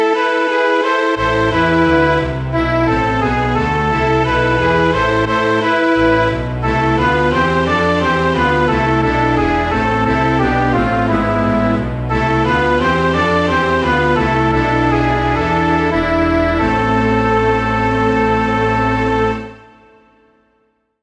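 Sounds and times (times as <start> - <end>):
string orchestra playing: 1.1 - 19.7.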